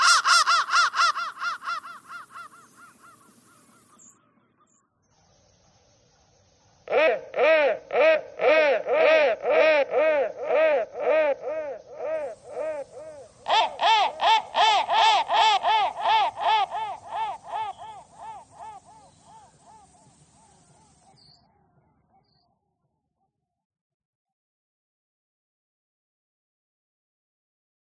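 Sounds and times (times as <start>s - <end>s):
crow: 0.0s - 4.7s, 6.9s - 21.4s.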